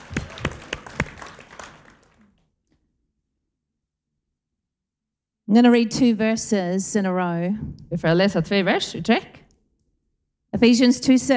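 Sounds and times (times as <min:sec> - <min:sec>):
audience applause for a speaker: 0:00.0 - 0:02.4
speech: 0:05.5 - 0:09.4, 0:10.6 - 0:11.3.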